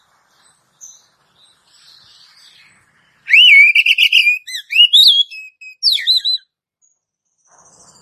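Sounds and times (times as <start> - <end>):
Oriental magpie-robin whistled phrase: 3.3 - 6.4.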